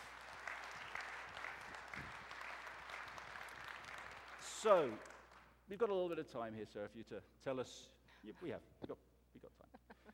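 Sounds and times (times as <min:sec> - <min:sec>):
audience round of applause: 0:00.0 - 0:05.3
speech: 0:04.6 - 0:05.1, 0:05.7 - 0:09.1.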